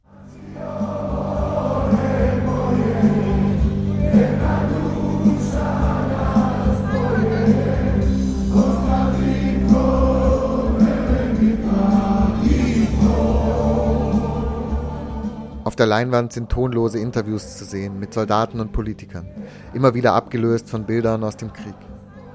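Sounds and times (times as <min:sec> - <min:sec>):
large crowd singing a festive chant and celebrating: 0:00.0 - 0:22.3
speech: 0:15.8 - 0:21.9.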